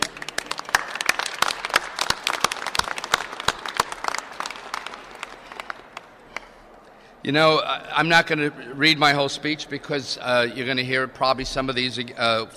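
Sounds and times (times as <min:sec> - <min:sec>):
audience applause, many hands clapping: 0:00.0 - 0:06.6
speech: 0:07.2 - 0:12.5.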